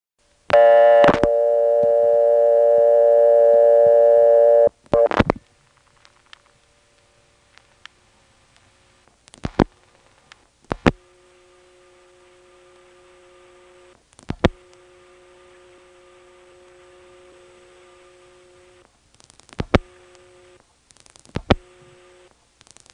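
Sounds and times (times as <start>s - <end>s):
payphone reorder tone after dialing one through a CAMA trunk: 0.5s - 5.2s.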